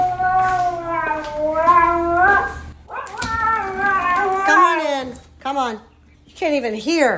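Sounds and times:
husky howling: 0.0 - 5.1
speech: 5.7 - 7.1.

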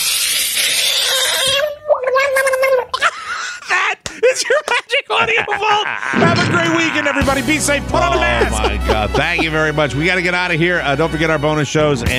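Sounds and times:
screaming frog put in water: 0.2 - 2.9
laughter: 3.0 - 9.9
speech: 5.2 - 12.1.

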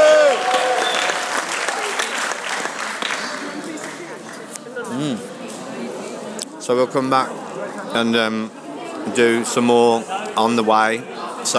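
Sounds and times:
audience cheering: 0.0 - 2.5
audience applause: 0.0 - 4.4
speech: 6.7 - 11.5.

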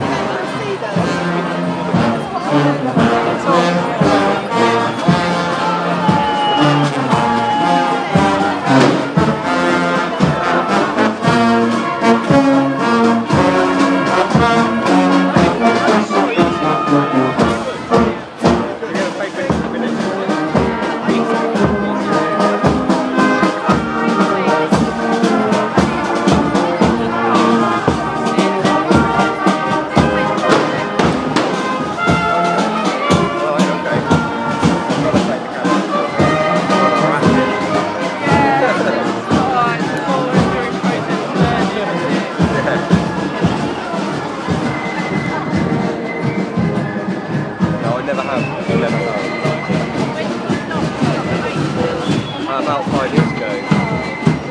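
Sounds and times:
bonfire music: 0.0 - 54.4.

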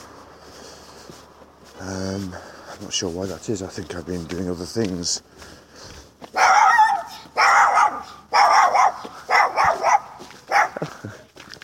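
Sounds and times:
speech: 1.8 - 5.6
small dog barking: 6.3 - 11.0.

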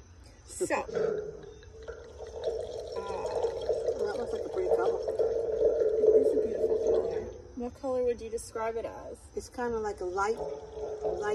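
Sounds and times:
speech: 0.5 - 1.5, 7.6 - 11.3
wine being poured into a glass: 0.9 - 7.6, 10.2 - 11.3.

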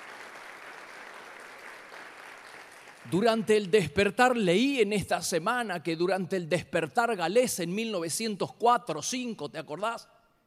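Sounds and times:
audience applause: 0.0 - 3.2
speech: 3.1 - 10.2.

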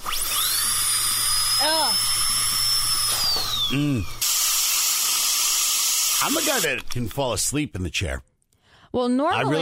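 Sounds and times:
constant hissing suction: 0.0 - 6.8
dental tool whining: 0.0 - 7.0
speech: 1.6 - 2.2, 3.7 - 4.2, 6.2 - 8.3, 8.9 - 9.6.

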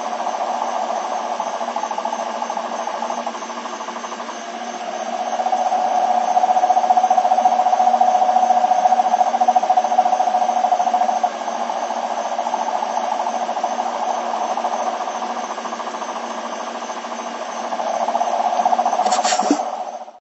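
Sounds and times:
marine cane toads in south Florida: 0.0 - 20.1.

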